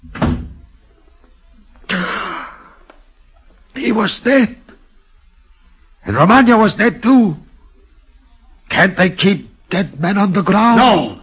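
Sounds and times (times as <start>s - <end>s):
door shutting: 0.0s - 0.7s
speech: 3.8s - 4.6s, 6.1s - 7.4s, 8.7s - 11.2s.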